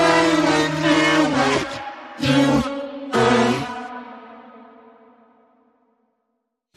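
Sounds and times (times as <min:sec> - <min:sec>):
horror vocals: 0:00.0 - 0:05.4.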